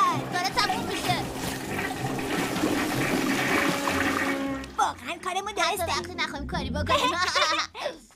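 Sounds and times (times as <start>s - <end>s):
toilet flushing: 0.2s - 5.3s
speech: 5.7s - 7.7s
laughter: 6.9s - 8.0s.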